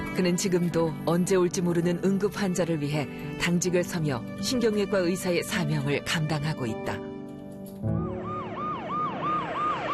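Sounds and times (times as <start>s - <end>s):
speech: 0.2s - 7.1s
ambulance siren arriving at hospital: 7.9s - 9.9s.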